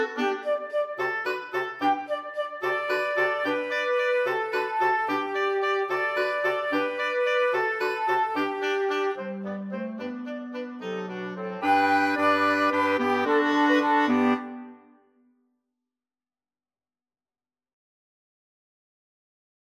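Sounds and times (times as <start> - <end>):
flexible mixed ensemble of 4 players: 0.0 - 14.9.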